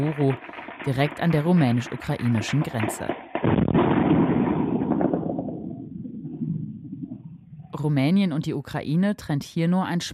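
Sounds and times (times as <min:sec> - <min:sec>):
speech: 0:00.0 - 0:03.6, 0:07.8 - 0:10.1
air defense gunfire against attack drones: 0:03.3 - 0:05.7.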